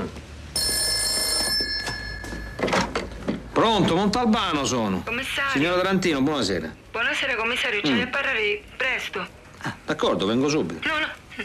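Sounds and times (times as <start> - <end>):
faint room noise: 0.0 - 11.4
telephone bell ringing: 0.5 - 3.0
speech: 3.6 - 11.4.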